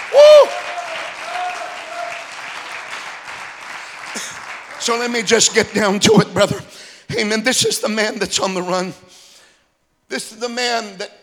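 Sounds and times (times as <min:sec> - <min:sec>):
audience clapping hands: 0:00.0 - 0:06.5
speech: 0:04.8 - 0:09.2, 0:10.1 - 0:11.2.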